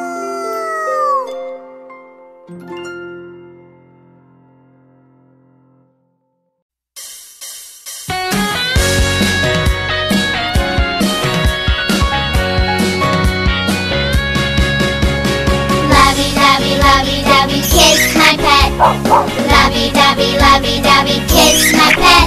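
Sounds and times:
lively music: 7.4 - 22.2
wolf howling at night: 18.7 - 19.6.

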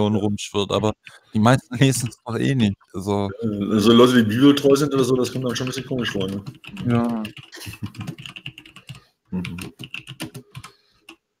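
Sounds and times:
speech: 0.0 - 8.4, 9.3 - 10.3
typing on a computer keyboard: 5.1 - 11.2.

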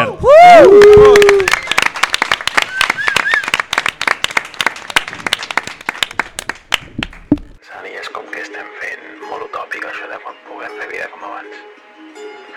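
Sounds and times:
audience ovation at a concert in Can Capa welcoming two performers: 0.7 - 7.6.

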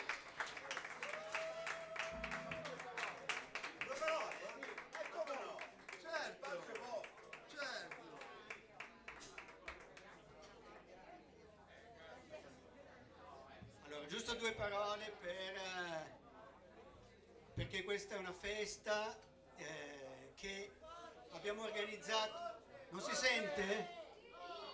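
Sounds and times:
audience applause: 0.0 - 9.8
speech: 14.1 - 16.2, 17.7 - 20.8, 21.4 - 24.0.

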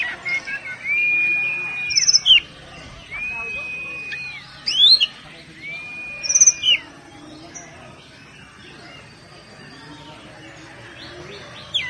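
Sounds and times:
Oriental magpie-robin singing: 0.0 - 11.8.

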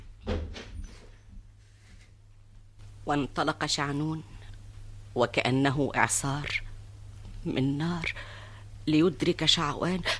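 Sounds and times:
door closing: 0.2 - 1.3
speech: 3.1 - 4.3, 5.2 - 6.7, 7.4 - 10.1.

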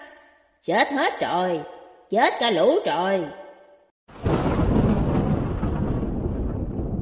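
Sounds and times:
speech: 0.7 - 3.4
thunder crashing in a storm over a mountain road: 4.1 - 7.0.

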